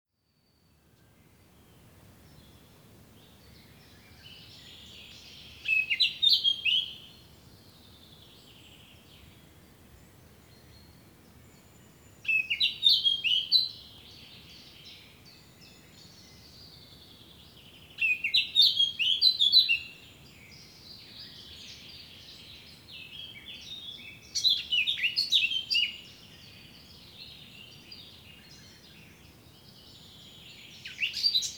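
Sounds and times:
faint hiss: 0:00.3 - 0:31.5
Eurasian blackcap singing: 0:03.9 - 0:07.1, 0:12.2 - 0:14.9, 0:17.9 - 0:20.0, 0:20.9 - 0:28.9, 0:30.0 - 0:31.5.

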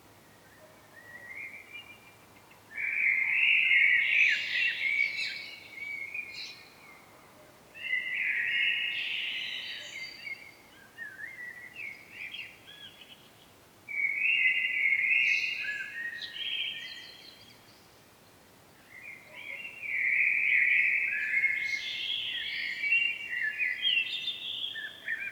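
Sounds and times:
Common blackbird warbling phrases: 0:00.3 - 0:07.0, 0:07.8 - 0:18.0, 0:18.8 - 0:25.3.

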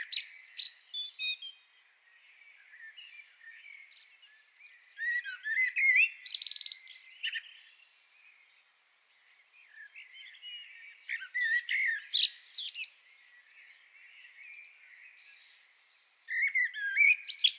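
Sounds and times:
common blackbird twittering: 0:00.0 - 0:01.6, 0:02.7 - 0:07.8, 0:09.7 - 0:13.0, 0:16.3 - 0:17.5.

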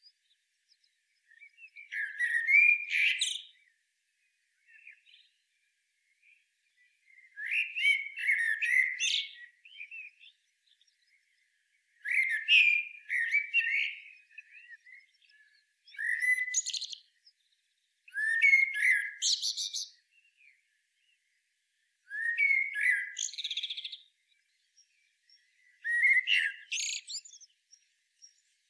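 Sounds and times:
common blackbird singing: 0:00.0 - 0:03.7, 0:04.6 - 0:05.6, 0:06.2 - 0:21.4, 0:22.0 - 0:28.6.

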